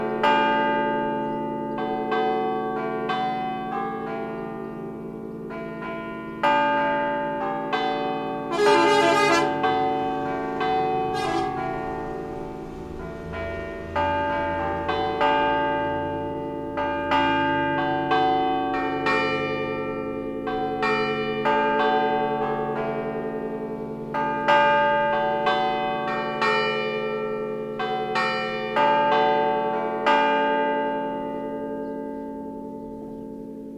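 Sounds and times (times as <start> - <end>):
church bells of San Cosimo di Struppa in Genova ringing: 0.1 - 32.8.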